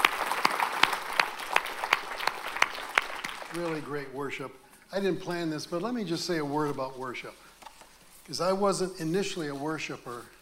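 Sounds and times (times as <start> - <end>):
audience applause for worship team: 0.0 - 4.1
speech: 3.6 - 7.4, 8.3 - 10.4.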